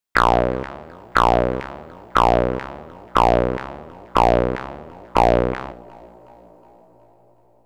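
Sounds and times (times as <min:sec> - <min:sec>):
gated robot sounds in 16 steps: 0:00.0 - 0:06.1.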